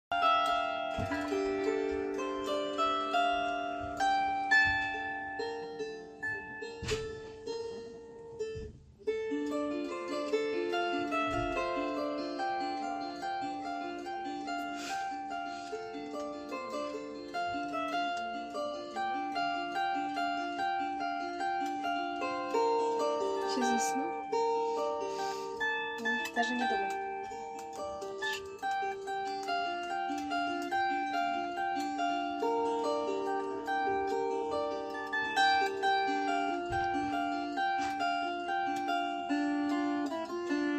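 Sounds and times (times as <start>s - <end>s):
gusli playing: 0.1s - 40.7s.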